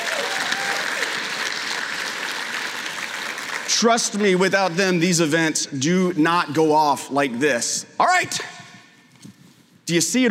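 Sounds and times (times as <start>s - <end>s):
audience round of applause: 0.0s - 4.3s
speech: 3.7s - 8.6s, 9.9s - 10.3s.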